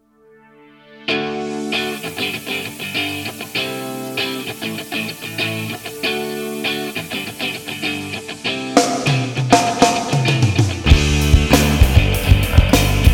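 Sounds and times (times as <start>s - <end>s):
pleasant groove music: 1.1s - 13.1s.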